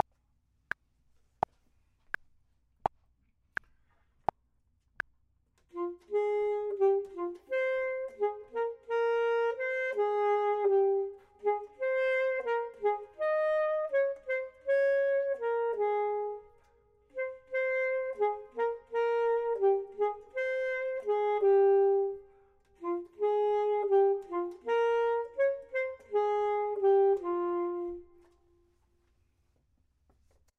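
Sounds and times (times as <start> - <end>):
saxophone: 5.7 - 29.0
clarinet: 5.7 - 29.1.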